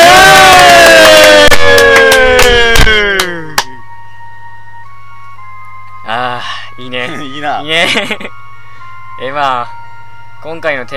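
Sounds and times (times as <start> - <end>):
applause: 0.5 - 3.7
speech: 7.0 - 8.4, 9.2 - 9.8, 10.4 - 10.9.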